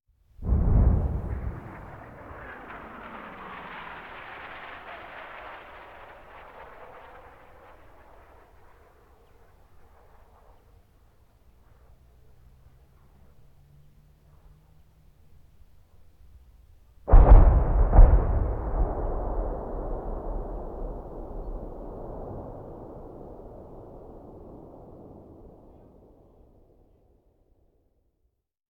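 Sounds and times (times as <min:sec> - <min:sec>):
artillery cannon firing: 0:00.4 - 0:07.5, 0:17.1 - 0:26.3.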